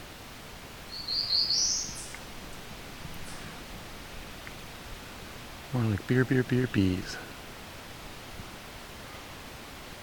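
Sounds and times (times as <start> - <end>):
soft hiss: 0.0 - 10.0
sped-up recording of bird song: 0.9 - 2.2
speech: 5.7 - 7.3.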